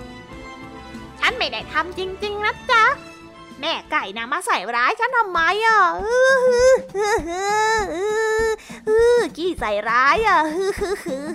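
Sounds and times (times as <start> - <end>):
speech: 1.3 - 11.3
voice performing exaggerated fake crying: 6.0 - 9.2.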